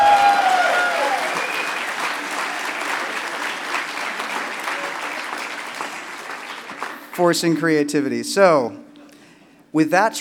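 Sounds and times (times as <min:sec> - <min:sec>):
audience applause: 0:00.0 - 0:07.2
speech: 0:07.2 - 0:08.8, 0:09.7 - 0:10.1.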